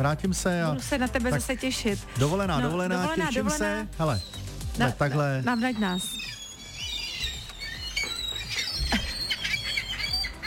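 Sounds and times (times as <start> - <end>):
speech: 0.0 - 6.4
seagull calls at the sea: 4.1 - 10.4.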